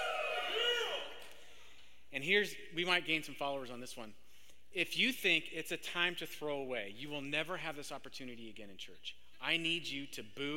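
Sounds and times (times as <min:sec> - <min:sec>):
church audience cheering: 0:00.0 - 0:01.2
speech: 0:02.2 - 0:10.5.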